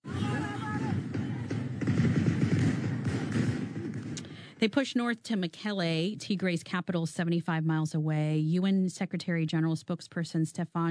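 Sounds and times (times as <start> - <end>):
gunfire in a conflict zone: 0.1 - 4.6
speech: 4.6 - 10.9.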